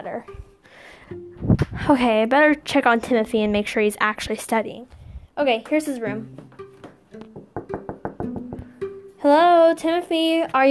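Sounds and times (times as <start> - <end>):
speech: 0.1 - 6.4, 9.2 - 10.6
knocking on a door: 6.2 - 8.8.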